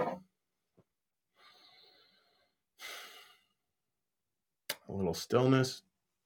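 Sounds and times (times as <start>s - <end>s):
slow breathing during a guided stillness exercise: 1.3s - 3.6s
speech: 4.9s - 5.9s.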